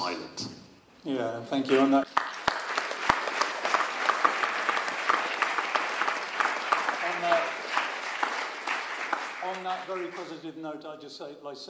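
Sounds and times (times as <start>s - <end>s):
speech: 1.0s - 2.2s, 9.7s - 11.6s
audience applause: 2.0s - 10.4s.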